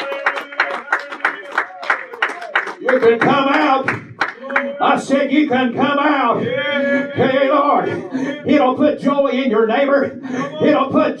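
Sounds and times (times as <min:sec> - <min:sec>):
church congregation clapping hands: 0:00.0 - 0:05.8
speech: 0:02.9 - 0:04.0, 0:04.6 - 0:11.1.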